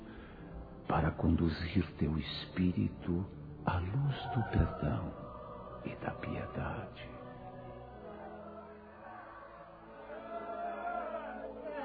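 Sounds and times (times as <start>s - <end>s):
speech: 0.9s - 5.2s, 5.8s - 7.2s
crowd noise: 4.9s - 11.8s.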